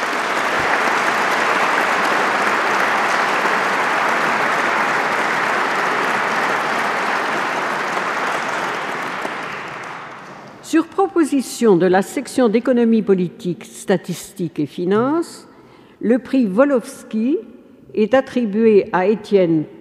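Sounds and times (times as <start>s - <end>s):
audience applauding prize winners: 0.0s - 10.6s
speech: 10.7s - 19.7s.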